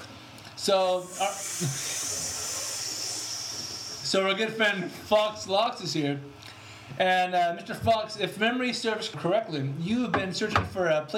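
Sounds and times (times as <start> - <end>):
speech: 0.7 - 2.0, 4.1 - 11.1
water hissing into steam on hot sauna rocks: 0.9 - 4.2.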